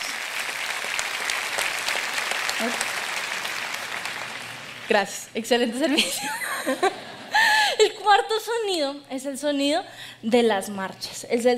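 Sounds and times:
audience applause: 0:00.0 - 0:05.1
speech: 0:02.6 - 0:02.9, 0:04.9 - 0:07.1, 0:07.8 - 0:11.5
laughter: 0:05.9 - 0:07.8.

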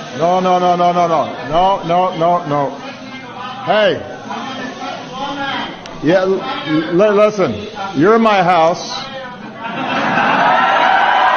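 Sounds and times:
speech: 0:00.2 - 0:02.8, 0:03.6 - 0:04.1, 0:06.0 - 0:09.0
laughter: 0:09.3 - 0:11.3
press crowd cheering and shouting: 0:09.8 - 0:11.3.

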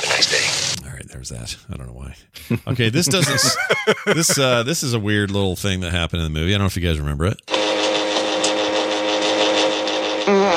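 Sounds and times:
speech: 0:01.2 - 0:07.6
laughter: 0:02.4 - 0:04.9
fart sound effect: 0:07.5 - 0:10.5.

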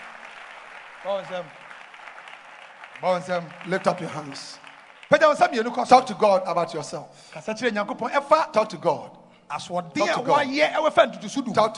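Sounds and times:
audience clapping: 0:00.0 - 0:07.6
speech: 0:01.0 - 0:01.6, 0:03.0 - 0:11.7.

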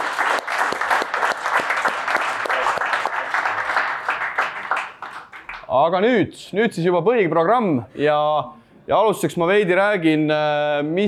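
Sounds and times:
audience applause: 0:00.0 - 0:05.7
speech: 0:05.7 - 0:11.0.

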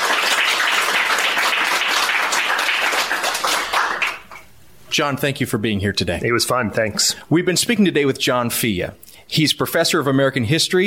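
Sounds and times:
audience applause thanking a history professor: 0:00.0 - 0:04.4
speech: 0:05.0 - 0:10.8.

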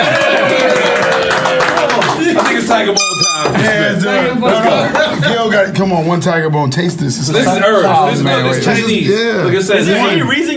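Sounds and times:
round of applause: 0:00.0 - 0:03.0
speech: 0:02.7 - 0:10.5.

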